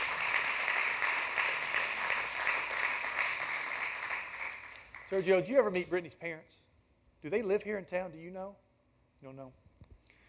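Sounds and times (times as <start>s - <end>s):
audience clapping hands: 0.0s - 5.9s
speech: 5.1s - 6.6s, 7.2s - 8.6s, 9.2s - 9.6s.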